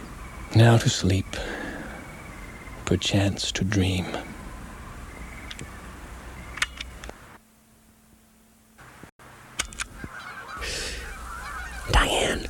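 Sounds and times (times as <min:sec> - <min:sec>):
Canada geese honking: 0:00.0 - 0:07.1, 0:09.8 - 0:12.4
speech: 0:00.5 - 0:01.6, 0:02.9 - 0:04.3.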